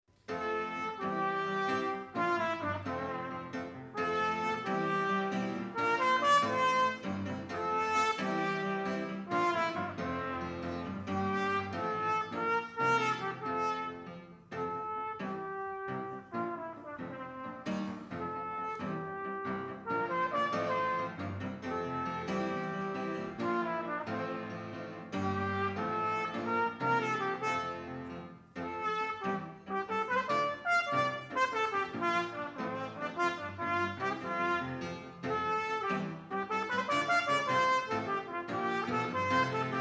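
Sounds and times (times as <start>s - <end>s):
gospel youth brass players: 0.2s - 39.7s.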